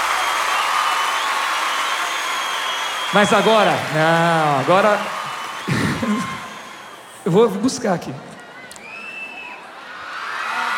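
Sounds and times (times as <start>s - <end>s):
crowd applause: 0.0s - 10.7s
speech: 3.1s - 6.4s, 7.2s - 8.3s.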